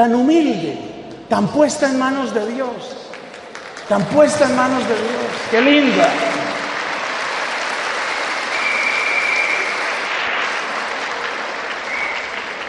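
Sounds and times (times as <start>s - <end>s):
speech: 0.0s - 3.1s, 3.9s - 6.4s
audience applause: 3.1s - 12.6s
faint whistle or cheer: 8.5s - 10.2s, 11.8s - 12.5s.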